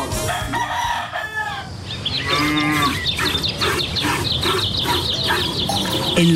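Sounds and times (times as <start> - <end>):
chickens clucking and squawking: 0.1 - 6.3
cattle lowing at morning milking: 2.2 - 6.3.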